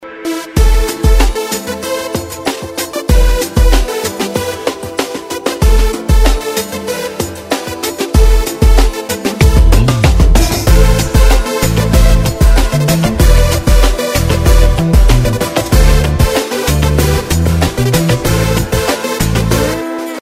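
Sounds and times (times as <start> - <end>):
ringtone melody: 0.0 - 20.1.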